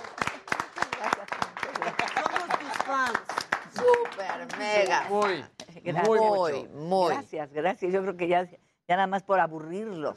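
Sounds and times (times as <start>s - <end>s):
applause: 0.0s - 6.2s
speech: 4.2s - 10.1s.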